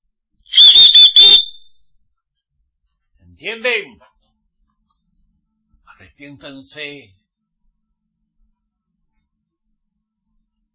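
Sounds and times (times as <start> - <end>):
small whistle blown in shrill high-pitched blasts: 0.5 - 1.8
speech: 3.4 - 4.1, 6.1 - 7.2.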